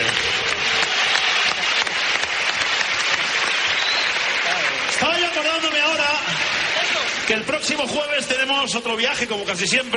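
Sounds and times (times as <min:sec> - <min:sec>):
audience applause: 0:00.0 - 0:08.6
speech: 0:07.3 - 0:09.9.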